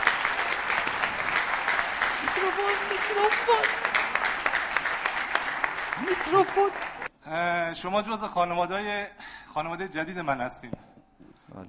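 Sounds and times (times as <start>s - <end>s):
live show audience applauding itself: 0.0s - 7.1s
speech: 2.4s - 3.9s, 6.0s - 10.8s.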